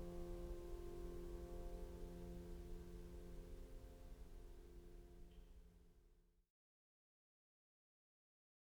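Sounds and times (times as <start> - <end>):
instrumental music: 0.0 - 5.5.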